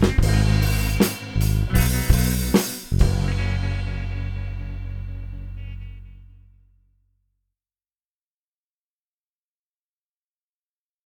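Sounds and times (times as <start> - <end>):
backing track: 0.0 - 6.5.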